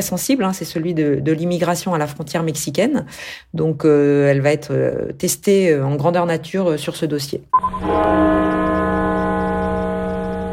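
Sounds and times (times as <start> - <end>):
speech: 0.0 - 8.7
bells tolling in tribute to Covid-19 dead in the United States: 7.6 - 10.5.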